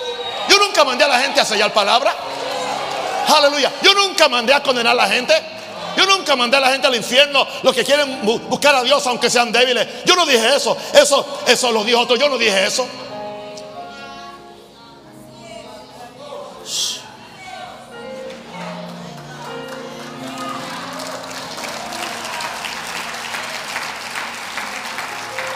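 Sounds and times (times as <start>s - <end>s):
audience applause: 0.0s - 4.2s, 18.2s - 25.5s
speech: 0.8s - 2.5s, 3.2s - 13.1s.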